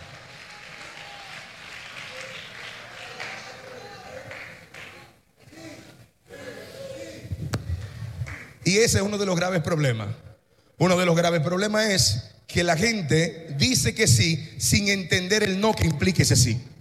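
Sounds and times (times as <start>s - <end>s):
crowd applauding: 0.0s - 5.6s
speech: 8.7s - 10.2s, 10.8s - 16.7s.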